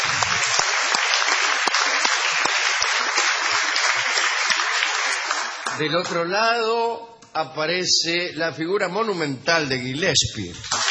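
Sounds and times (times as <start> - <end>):
audience applause: 0.0 - 6.2, 10.6 - 10.8
speech: 5.8 - 10.8.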